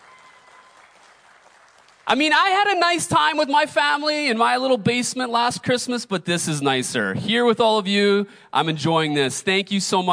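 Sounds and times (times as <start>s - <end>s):
audience applauding: 0.0s - 2.8s
speech: 2.1s - 10.1s.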